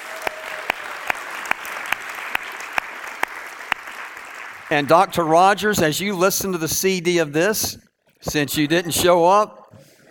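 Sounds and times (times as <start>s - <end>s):
audience applauding: 0.0s - 5.3s
speech: 4.7s - 9.6s.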